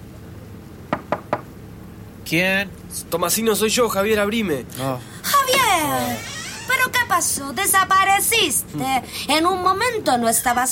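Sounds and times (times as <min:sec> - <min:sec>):
low steady hum: 0:00.0 - 0:10.7
knuckles knocking on the door of ship's cabin 23: 0:00.9 - 0:01.4
speech: 0:02.3 - 0:10.7.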